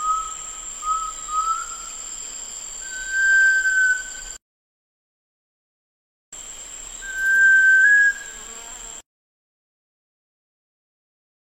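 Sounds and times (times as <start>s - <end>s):
sunbittern whistling: 0.0s - 2.0s, 2.8s - 4.4s, 7.0s - 8.4s.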